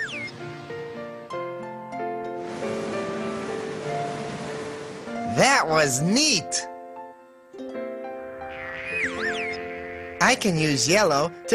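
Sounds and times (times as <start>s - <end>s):
ocean waves heard in a seashell: 0.0s - 1.2s, 2.3s - 6.5s
sustained musical tones: 0.0s - 11.2s
gentle swoosh: 2.3s - 5.3s
speech: 5.4s - 6.7s, 10.3s - 11.5s.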